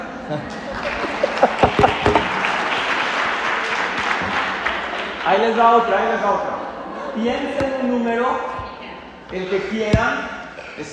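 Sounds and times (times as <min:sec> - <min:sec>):
laughter: 0:00.0 - 0:02.7, 0:05.8 - 0:10.9
speech: 0:00.3 - 0:00.8, 0:05.3 - 0:06.5, 0:07.2 - 0:08.5, 0:09.3 - 0:10.9
audience applause: 0:00.5 - 0:06.4.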